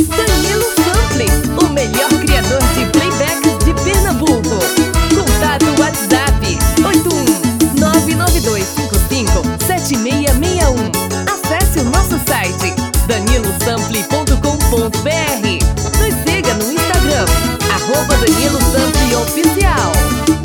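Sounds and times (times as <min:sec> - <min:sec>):
woman singing vanerão: 0:00.1 - 0:20.3.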